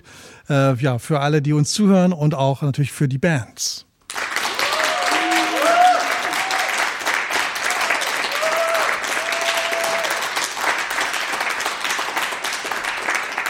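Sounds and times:
speech: 0.5 - 3.9
studio audience applause: 4.1 - 13.4.

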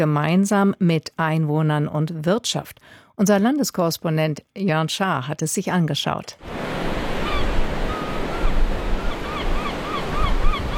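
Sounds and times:
speech: 0.0 - 6.9
surf washing onto a sandy North Sea beach: 6.4 - 10.7
birds chirping: 7.1 - 10.7.

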